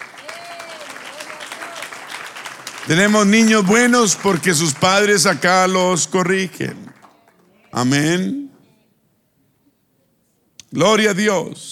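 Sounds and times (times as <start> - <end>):
whistles and cheers: 0.0 - 2.0
audience applause: 0.0 - 7.9
speech: 2.9 - 6.8, 7.8 - 8.4, 10.7 - 11.7.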